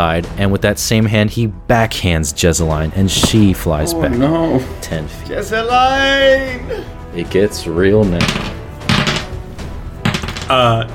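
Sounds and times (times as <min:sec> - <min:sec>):
speech: 0:00.0 - 0:08.6, 0:10.5 - 0:10.9
dice clattering across a hard surface: 0:08.2 - 0:09.3, 0:10.0 - 0:10.5.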